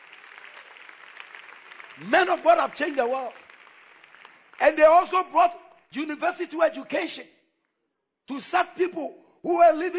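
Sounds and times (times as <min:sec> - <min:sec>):
crowd clapping: 0:00.0 - 0:05.9
speech: 0:02.0 - 0:03.4, 0:04.6 - 0:07.3, 0:08.3 - 0:09.9.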